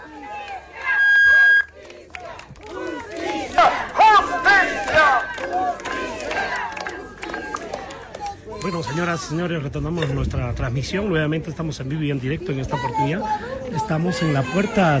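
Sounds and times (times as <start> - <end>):
crowd of protesters shouting and chanting for justice: 0.0 - 8.9
speech: 8.7 - 14.9.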